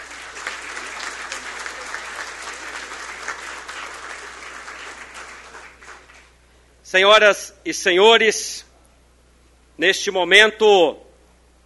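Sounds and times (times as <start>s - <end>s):
audience applause: 0.0s - 6.4s
speech: 6.9s - 8.7s, 9.8s - 11.0s.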